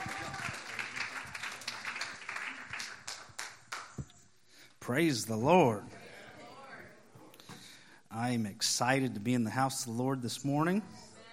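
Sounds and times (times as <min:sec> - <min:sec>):
church audience applause welcoming a guest speaker: 0:00.0 - 0:04.0
speech: 0:04.8 - 0:06.0, 0:08.2 - 0:11.1.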